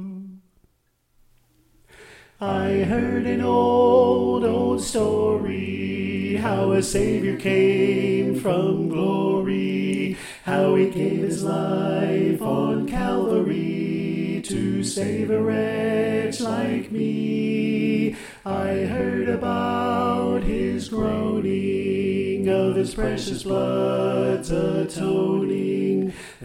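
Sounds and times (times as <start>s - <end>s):
soprano singing: 2.4s - 26.1s.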